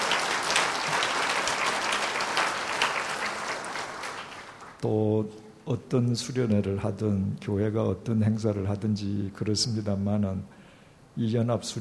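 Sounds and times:
applause: 0:00.0 - 0:04.8
speech: 0:04.8 - 0:10.6, 0:11.2 - 0:11.7.

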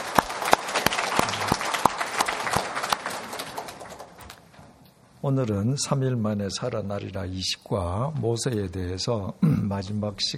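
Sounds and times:
audience applauding: 0:00.0 - 0:04.4
speech: 0:05.2 - 0:10.3.

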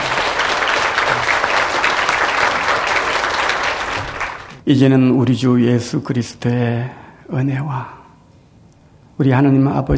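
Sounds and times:
audience applause: 0:00.0 - 0:04.6
speech: 0:04.7 - 0:08.0, 0:09.2 - 0:09.9.

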